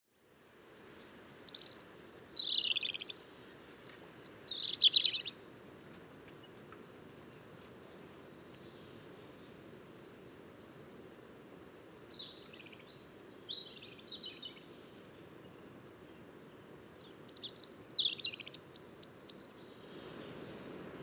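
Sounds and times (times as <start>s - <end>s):
European robin singing: 0.7s - 5.4s, 11.7s - 14.8s, 17.0s - 20.6s.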